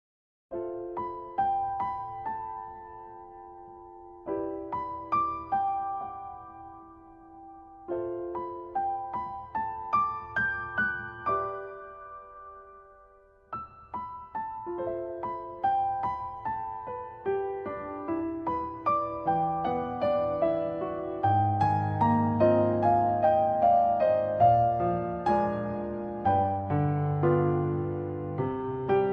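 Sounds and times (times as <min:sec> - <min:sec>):
piano: 0:00.5 - 0:29.1.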